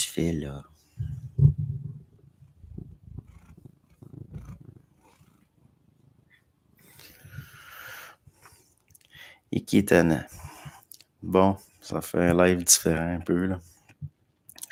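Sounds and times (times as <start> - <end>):
speech: 0.1 - 1.2, 9.5 - 10.4, 11.2 - 13.7
cat with a healing ear infection growling: 1.2 - 5.5.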